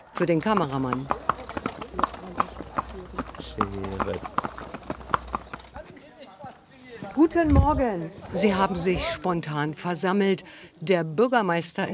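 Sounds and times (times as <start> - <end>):
horse-drawn carriage hooves clip-clopping: 0.0 - 7.3
speech: 0.2 - 1.3, 3.0 - 4.6, 7.2 - 11.9.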